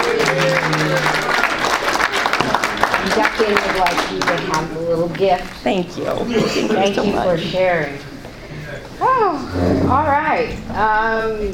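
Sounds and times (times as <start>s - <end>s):
audience applause at an informal gathering: 0.0s - 4.9s
speech: 3.4s - 8.1s, 9.0s - 11.5s
laughter: 6.2s - 7.8s.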